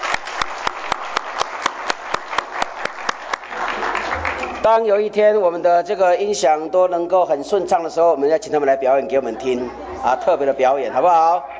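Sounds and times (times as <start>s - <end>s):
audience applause for children: 0.0s - 4.7s
speech: 4.6s - 11.5s.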